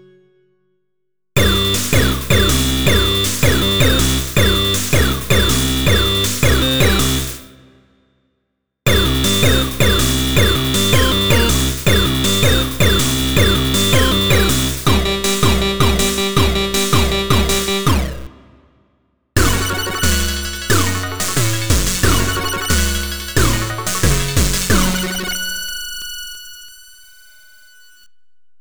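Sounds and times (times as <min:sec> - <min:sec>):
8-bit stabs: 0:01.4 - 0:07.5, 0:08.9 - 0:18.5, 0:19.4 - 0:25.8.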